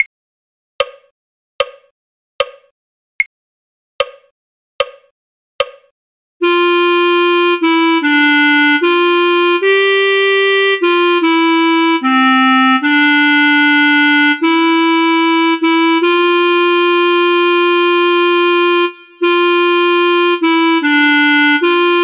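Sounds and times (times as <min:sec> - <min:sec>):
clarinet: 0:06.4 - 0:22.0.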